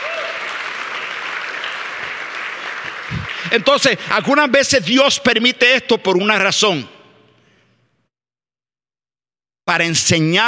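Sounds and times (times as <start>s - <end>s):
audience applauding loudly: 0.0s - 4.5s
speech: 3.4s - 7.0s, 9.8s - 10.4s.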